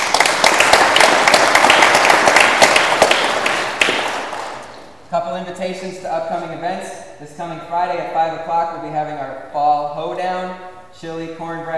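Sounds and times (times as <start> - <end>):
audience applause: 0.0 - 4.8
speech: 5.3 - 11.7.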